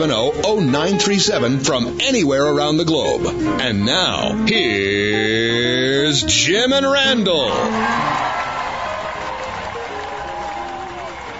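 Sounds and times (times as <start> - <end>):
speech: 0.0 - 8.3
crowd voices: 7.4 - 11.3
scattered cheers: 7.4 - 11.3
studio audience clapping: 7.5 - 11.3.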